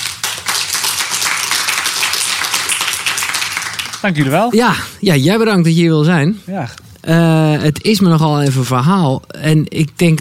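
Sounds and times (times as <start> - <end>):
audience applause: 0.0 - 4.5
speech: 4.0 - 10.1.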